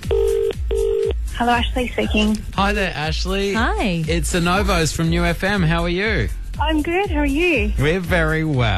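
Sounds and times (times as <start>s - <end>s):
telephone ringing: 0.1s - 1.1s
speech: 1.4s - 8.7s.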